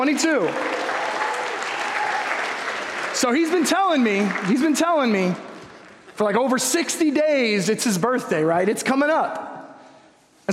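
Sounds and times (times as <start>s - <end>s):
speech: 0.0s - 1.0s, 3.2s - 5.5s, 6.2s - 9.5s
audience applause: 0.0s - 5.4s.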